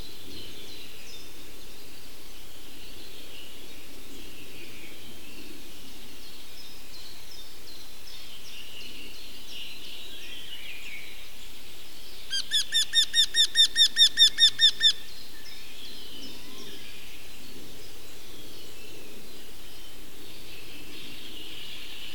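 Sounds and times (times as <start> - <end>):
wryneck calling: 12.3 - 15.0.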